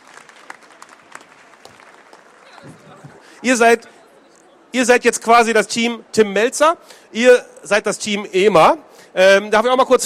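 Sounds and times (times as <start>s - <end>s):
audience applause: 0.0s - 3.3s
speech: 2.6s - 4.0s, 4.7s - 10.0s.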